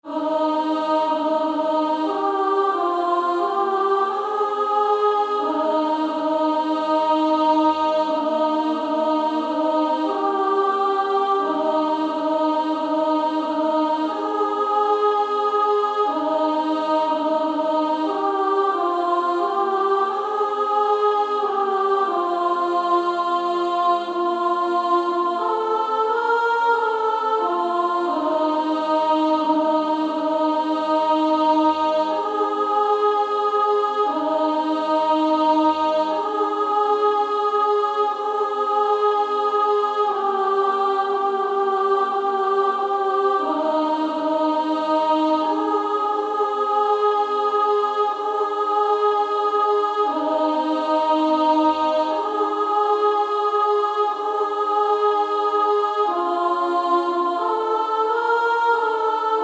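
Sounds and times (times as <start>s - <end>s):
female choir singing: 0.0s - 59.4s.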